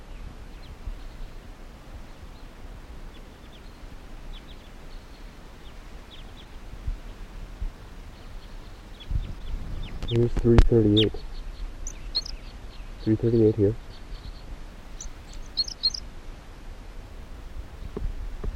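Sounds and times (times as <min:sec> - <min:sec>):
speech: 0:10.1 - 0:11.3, 0:13.0 - 0:13.8
wild crossbill calls, type 2: 0:11.8 - 0:12.4, 0:14.9 - 0:16.0.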